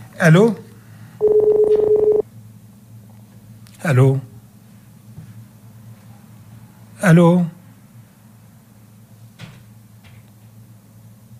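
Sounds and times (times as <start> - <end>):
speech: 0.2 - 0.6, 3.8 - 4.3, 7.0 - 7.6
telephone dialing tones: 1.2 - 2.2.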